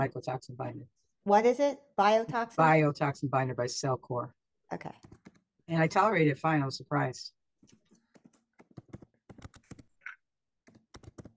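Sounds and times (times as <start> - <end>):
speech: 0.0 - 7.4
typing on a computer keyboard to copy and paste: 8.1 - 9.9, 10.7 - 11.3.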